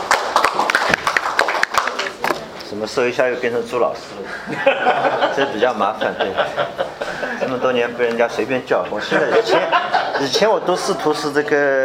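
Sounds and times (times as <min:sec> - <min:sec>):
audience applause welcoming a teacher invited to speak: 0:00.0 - 0:02.2
speech: 0:02.8 - 0:06.8, 0:07.5 - 0:11.8
laughter: 0:04.2 - 0:07.6, 0:08.9 - 0:11.2.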